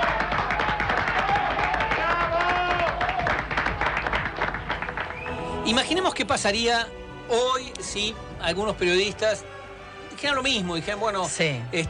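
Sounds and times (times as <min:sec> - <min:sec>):
applause: 0:00.0 - 0:05.5
speech: 0:05.7 - 0:09.5, 0:10.2 - 0:11.8.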